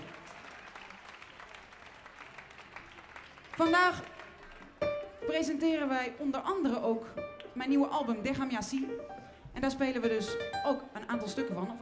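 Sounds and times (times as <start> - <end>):
audience applause: 0.0 - 5.0
speech: 3.6 - 4.2, 5.3 - 11.8.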